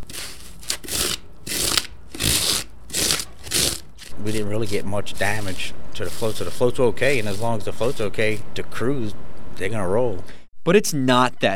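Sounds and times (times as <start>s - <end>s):
metal horse comb shaping styrofoam: 0.0s - 8.4s
speech: 4.2s - 11.5s.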